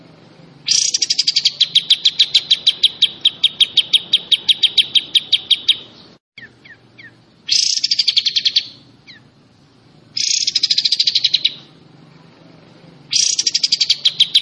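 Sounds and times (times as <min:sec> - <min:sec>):
Pied Triller song in the besetan style: 0:00.0 - 0:14.4.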